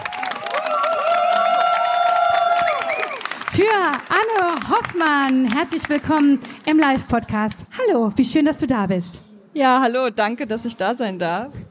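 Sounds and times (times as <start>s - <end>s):
cheering voices and whistle-like whoops: 0.0s - 3.4s
live audience applause welcoming an author: 0.0s - 6.5s
speech: 3.6s - 11.6s.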